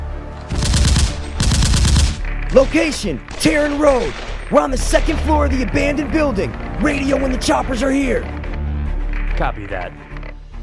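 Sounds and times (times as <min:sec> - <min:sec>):
rifle gunfire in rapid automatic bursts: 0:00.5 - 0:05.3
speech: 0:02.5 - 0:08.4, 0:09.4 - 0:10.1.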